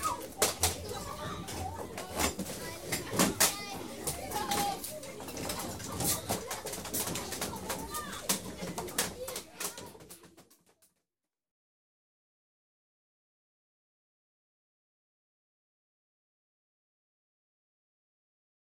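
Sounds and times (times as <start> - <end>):
noisy children in a class at a convent: 0.0 - 11.0.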